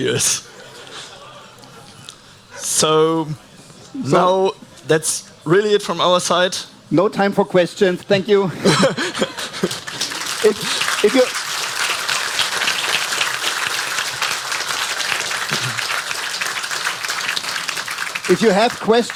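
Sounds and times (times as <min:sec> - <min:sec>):
speech: 0:00.0 - 0:00.6, 0:02.8 - 0:09.8, 0:10.4 - 0:11.4, 0:18.3 - 0:19.1
laughter: 0:00.1 - 0:02.1, 0:08.5 - 0:11.4, 0:15.4 - 0:16.3
audience applause: 0:09.2 - 0:19.1.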